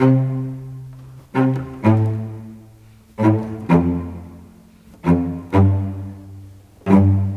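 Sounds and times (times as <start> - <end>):
string cello: 0.0 - 7.3.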